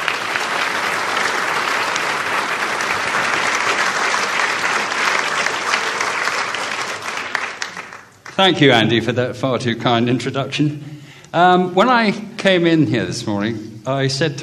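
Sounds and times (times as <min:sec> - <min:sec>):
audience applause: 0:00.0 - 0:08.8
speech: 0:08.4 - 0:14.4.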